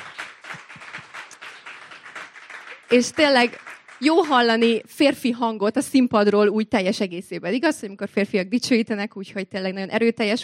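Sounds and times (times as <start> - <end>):
church audience applauding worship musicians: 0.0 - 5.2
speech: 2.9 - 10.4.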